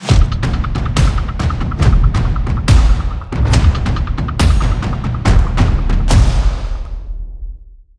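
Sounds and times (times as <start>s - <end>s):
processed war drums: 0.0s - 7.6s
percussion: 0.0s - 7.9s.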